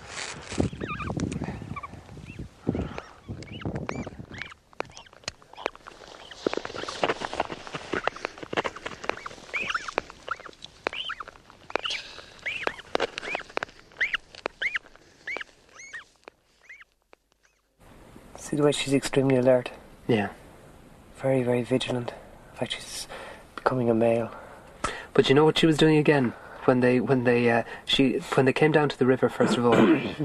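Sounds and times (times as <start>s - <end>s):
bird screaming call: 0.7s - 1.2s, 1.8s - 6.9s, 8.1s - 13.4s, 14.0s - 16.8s
speech: 18.6s - 20.4s, 21.2s - 24.4s, 25.2s - 30.2s.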